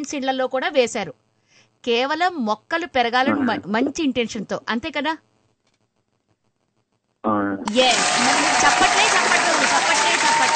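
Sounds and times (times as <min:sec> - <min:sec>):
speech: 0:00.0 - 0:05.3, 0:07.2 - 0:09.1
audience applause: 0:07.7 - 0:10.5.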